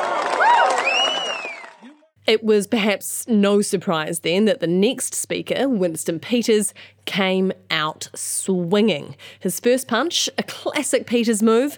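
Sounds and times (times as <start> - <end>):
large crowd cheering and applauding: 0.0 - 2.0
sharp rising whistles: 0.8 - 1.8
speech: 2.3 - 11.7.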